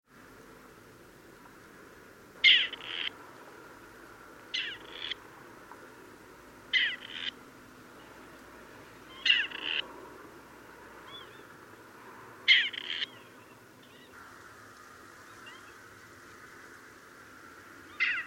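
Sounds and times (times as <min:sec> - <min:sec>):
Grey partridge giving harsh grating rasped calls: 0:02.4 - 0:03.1, 0:04.5 - 0:05.2, 0:06.7 - 0:07.4, 0:09.1 - 0:09.8, 0:12.5 - 0:16.8, 0:17.9 - 0:18.2.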